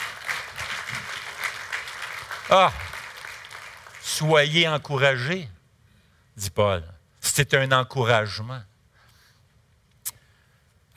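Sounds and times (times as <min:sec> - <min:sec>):
audience applause: 0:00.0 - 0:04.3
speech: 0:02.5 - 0:02.8, 0:04.2 - 0:05.6, 0:06.4 - 0:08.7.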